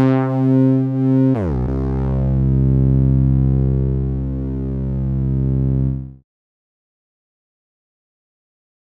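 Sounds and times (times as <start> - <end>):
lead synth: 0.0 - 6.2.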